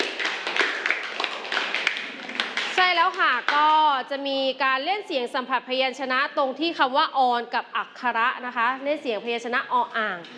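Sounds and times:
clapping for a group: 0.0 - 3.8
speech: 3.0 - 10.3.

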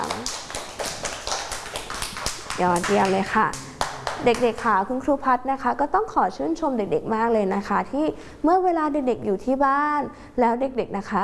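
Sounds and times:
children clapping for a classmate in a class: 0.0 - 4.8
speech: 2.6 - 3.6, 4.2 - 11.2.

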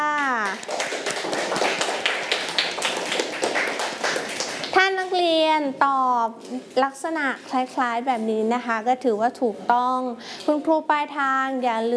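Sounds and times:
classroom clapping: 0.0 - 5.2
speech: 5.5 - 11.9.

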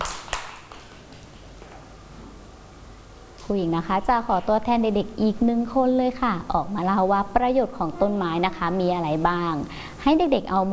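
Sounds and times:
hand claps: 0.0 - 1.3
speech: 3.5 - 10.7.

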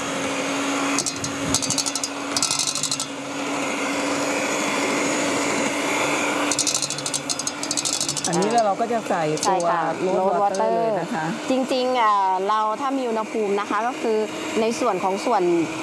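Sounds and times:
electric blender running at speed one on a small batch: 0.0 - 15.8
speech: 8.8 - 15.8.

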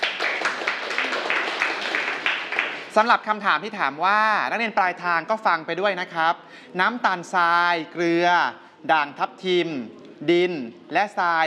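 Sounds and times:
students clapping: 0.0 - 3.0
speech: 3.0 - 11.4.

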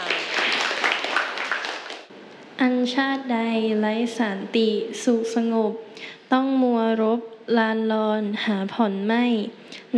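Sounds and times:
classroom clapping: 0.0 - 2.1
speech: 2.6 - 9.9.

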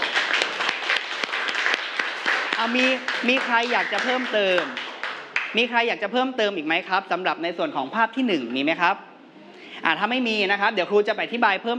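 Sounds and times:
group of children applauding in classroom: 0.0 - 5.5
speech: 2.6 - 4.8, 5.5 - 9.1, 9.8 - 11.7.

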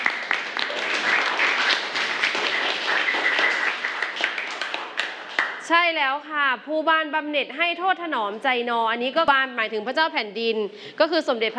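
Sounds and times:
classroom applause for a student: 0.0 - 5.7
speech: 5.7 - 11.5.

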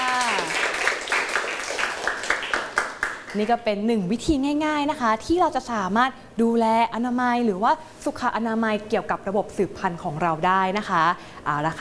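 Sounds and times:
classroom group clapping: 0.0 - 3.6
speech: 3.3 - 11.7.

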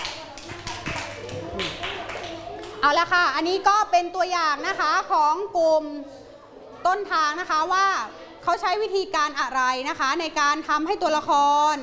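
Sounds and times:
students in a classroom applauding a group: 0.0 - 2.8
speech: 2.8 - 6.2, 6.8 - 11.8.

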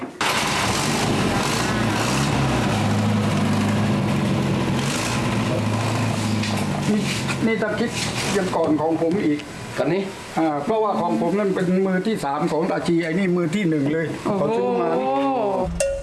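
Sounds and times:
car engines started to show off the cars, then idling: 0.2 - 9.7
speech: 7.0 - 15.8.

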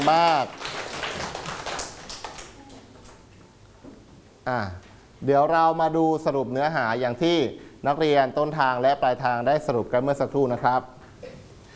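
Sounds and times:
speech: 0.0 - 0.8, 4.5 - 11.4
students clapping their hands: 0.0 - 3.2.

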